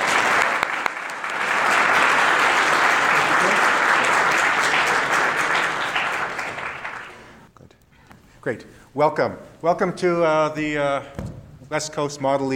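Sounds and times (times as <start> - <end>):
audience applause: 0.0 - 7.5
speech: 8.4 - 12.5.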